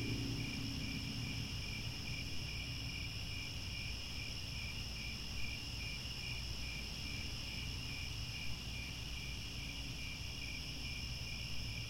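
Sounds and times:
low rumbling noise: 0.0s - 3.4s
crickets chirping: 0.0s - 11.8s.

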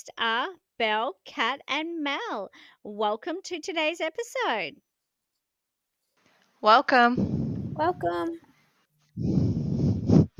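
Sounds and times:
speech: 0.0s - 4.9s, 6.6s - 8.5s, 9.2s - 9.4s
breathing into the microphone: 2.5s - 2.8s, 7.2s - 10.3s.

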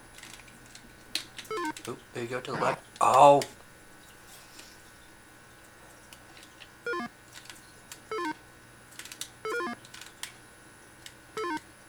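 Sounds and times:
speech: 1.6s - 3.6s
video game chime for finishing a section: 6.9s - 7.1s, 9.5s - 9.8s, 11.4s - 11.6s.

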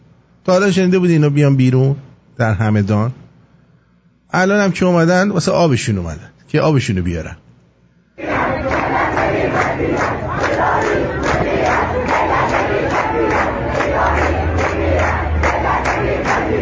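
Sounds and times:
speech: 0.4s - 3.2s, 4.3s - 7.4s
large crowd chanting protest slogans: 8.2s - 16.6s.

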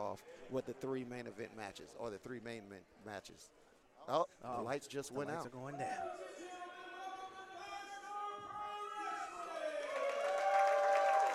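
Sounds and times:
speech: 0.0s - 6.4s
wrestling arena crowd cheering and roaring: 8.6s - 11.3s.

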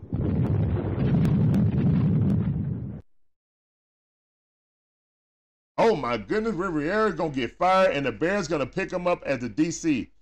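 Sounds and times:
thunder and lightning sound effect: 0.0s - 3.0s
speech: 5.9s - 10.1s.

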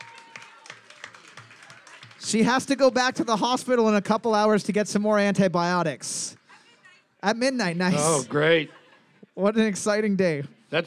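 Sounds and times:
round of applause: 0.0s - 3.4s
speech: 2.3s - 6.4s, 7.2s - 8.8s, 9.4s - 10.8s.

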